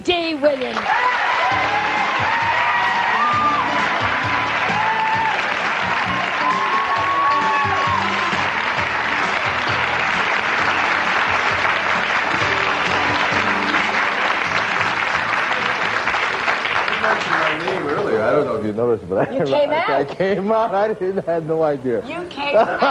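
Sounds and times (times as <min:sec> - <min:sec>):
speech: 0:00.0 - 0:02.4, 0:17.1 - 0:22.8
crowd applauding: 0:00.5 - 0:18.8
cheers and whoops: 0:00.7 - 0:09.4
laughter: 0:22.4 - 0:22.8.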